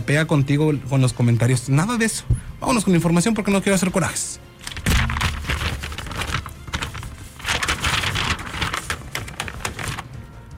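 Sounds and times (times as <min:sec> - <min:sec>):
speech: 0:00.1 - 0:04.5
sheets of paper shuffling and rustling: 0:04.6 - 0:10.2.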